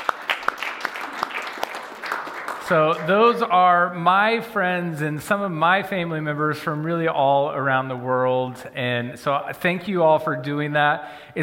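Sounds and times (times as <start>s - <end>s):
round of applause: 0.0s - 3.5s
speech: 2.7s - 11.4s.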